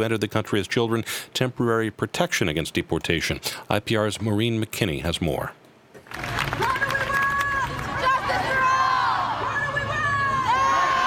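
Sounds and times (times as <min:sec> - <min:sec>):
speech: 0:00.0 - 0:06.6
crowd of protesters chanting and cheering at a DACA rally: 0:06.6 - 0:11.0.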